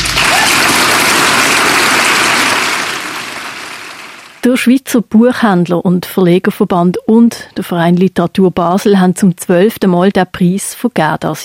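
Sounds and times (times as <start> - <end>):
audience applause: 0.0 - 4.4
speech: 4.4 - 11.4.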